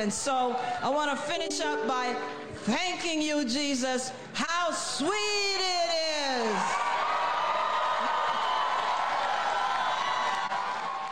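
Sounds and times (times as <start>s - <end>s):
speech: 0.0s - 6.8s
excited crowd cheering after speech: 6.3s - 11.1s.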